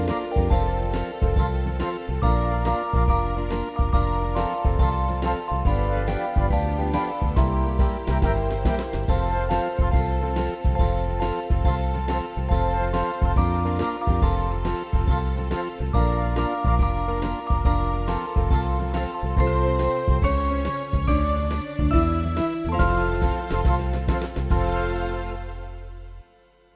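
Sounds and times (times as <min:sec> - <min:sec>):
Christmas song without piano: 0:00.0 - 0:26.7.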